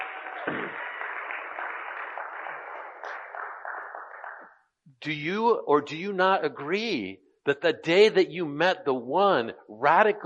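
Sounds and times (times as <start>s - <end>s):
audience applause: 0.0s - 4.5s
speech: 5.0s - 10.2s.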